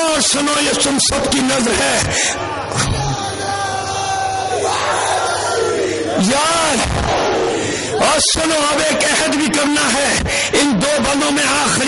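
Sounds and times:
speech: 0:00.2 - 0:03.5, 0:06.2 - 0:07.2, 0:08.0 - 0:11.8
crowd roaring its answer to a slogan chant: 0:02.4 - 0:08.2.

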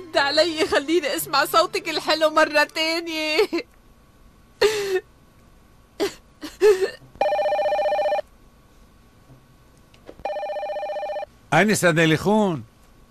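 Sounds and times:
speech: 0:00.3 - 0:03.7, 0:11.5 - 0:12.7
electronic telephone bell ringing: 0:07.2 - 0:08.3, 0:10.2 - 0:11.3.

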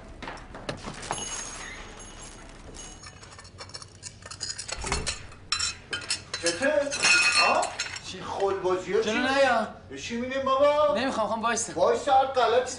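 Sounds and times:
dishes being smashed in anger: 0:02.2 - 0:08.0
speech: 0:08.1 - 0:12.7.

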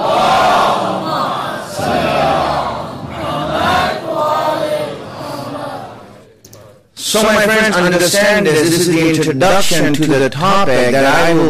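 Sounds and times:
crowd reciting salawat in unison: 0:00.0 - 0:06.4
speech: 0:07.1 - 0:11.4.

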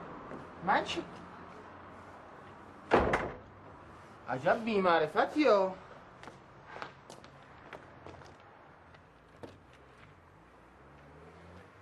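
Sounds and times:
speech: 0:00.6 - 0:01.2, 0:04.3 - 0:05.8
door opening thuds: 0:02.9 - 0:03.5.

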